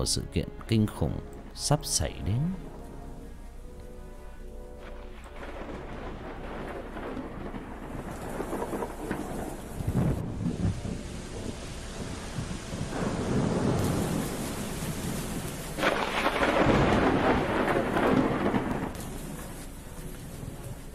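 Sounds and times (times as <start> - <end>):
speech: 0.0 - 2.7
rain in a thunderstorm: 1.9 - 20.9
heavy thunder in a thunderstorm: 4.8 - 20.9.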